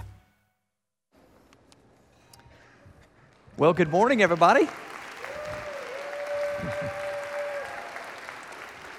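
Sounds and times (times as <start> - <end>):
speech: 3.6 - 4.9
audience clapping: 3.6 - 8.9.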